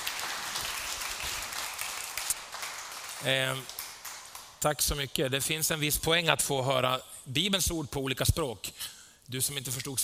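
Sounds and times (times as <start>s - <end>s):
applause from a church gathering after a Bible reading: 0.0s - 5.0s
speech: 3.2s - 3.8s, 4.6s - 10.0s.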